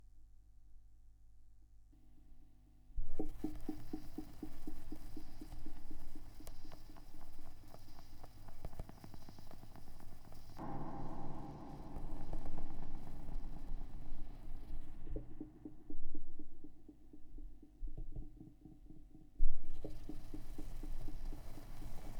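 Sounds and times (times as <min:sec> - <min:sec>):
vinyl record noise: 0:03.1 - 0:18.1, 0:19.5 - 0:22.1
tape echo effect: 0:10.6 - 0:17.6.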